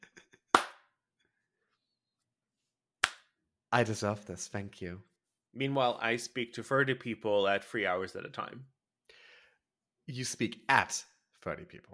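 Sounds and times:
hands clapping: 0.0s - 0.9s, 3.0s - 3.3s
speech: 3.7s - 8.8s, 10.1s - 11.9s.

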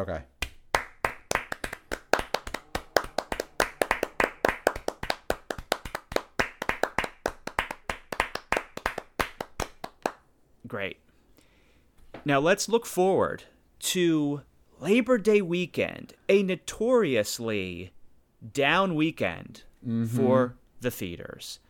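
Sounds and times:
speech: 0.0s - 0.3s, 10.7s - 11.0s, 12.2s - 21.6s
hosts clapping hands: 0.4s - 10.3s.

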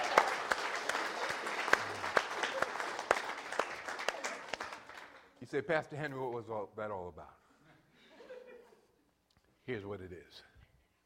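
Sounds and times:
audience hand clapping: 0.0s - 5.4s
speech: 5.5s - 7.4s, 9.7s - 10.5s.

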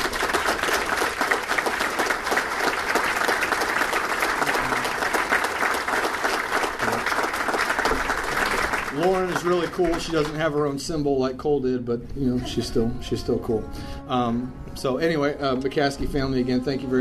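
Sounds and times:
crowd applauding: 0.0s - 10.8s
speech: 9.4s - 16.9s.

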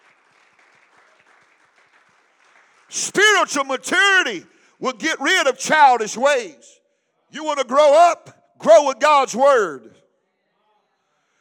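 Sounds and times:
audience clapping: 0.0s - 3.4s
speech: 2.9s - 10.0s.

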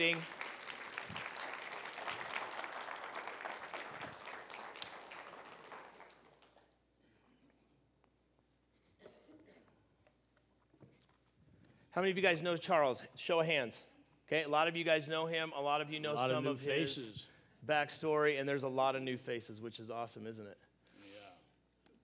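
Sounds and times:
speech: 0.0s - 0.4s, 12.0s - 20.7s
audience clapping: 0.0s - 6.7s.

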